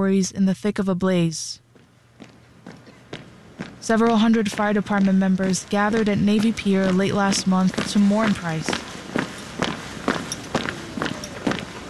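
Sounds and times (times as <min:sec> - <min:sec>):
speech: 0:00.0 - 0:01.6, 0:03.8 - 0:08.8
footsteps of firefighters marching in a column into the Navy Pier ballroom: 0:01.7 - 0:11.8.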